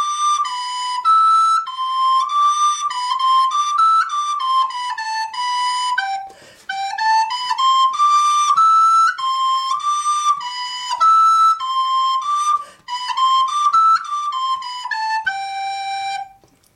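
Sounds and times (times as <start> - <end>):
flute playing an allemande: 0.0 - 16.5.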